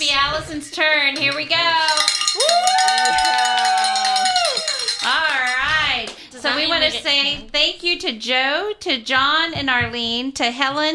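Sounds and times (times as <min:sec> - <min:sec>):
speech: 0:00.0 - 0:03.3, 0:06.7 - 0:10.9
bell ringing: 0:01.8 - 0:05.7.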